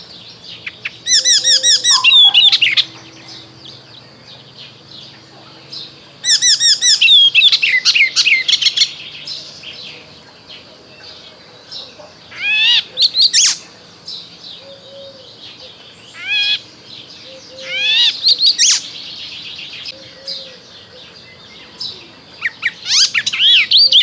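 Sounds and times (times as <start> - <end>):
icterine warbler singing: 0.0 - 24.0.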